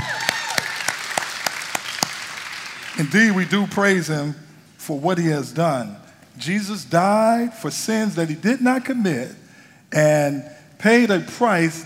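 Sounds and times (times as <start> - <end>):
audience round of applause: 0.0 - 3.2
speech: 3.0 - 11.8.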